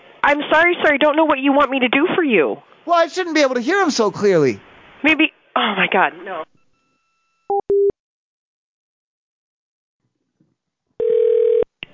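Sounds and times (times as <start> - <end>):
speech: 0.3 - 6.5
telephone ringing tone while calling: 11.0 - 11.7.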